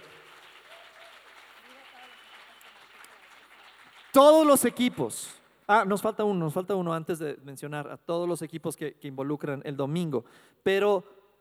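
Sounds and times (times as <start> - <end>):
loud applause: 0.0 - 4.7
speech: 4.2 - 11.2.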